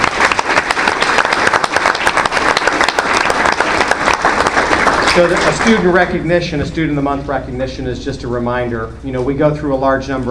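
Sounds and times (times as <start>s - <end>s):
audience applause: 0.0s - 6.0s
speech: 5.2s - 10.3s.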